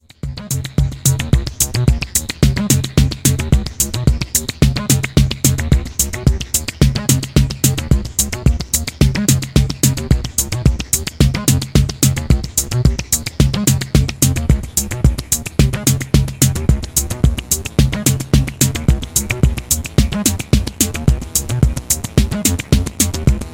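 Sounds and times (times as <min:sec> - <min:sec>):
rhythm: 0:00.0 - 0:23.5.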